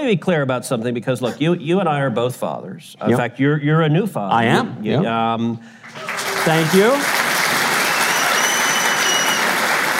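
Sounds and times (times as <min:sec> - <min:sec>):
speech: 0:00.0 - 0:07.2
audience applause: 0:05.8 - 0:09.9.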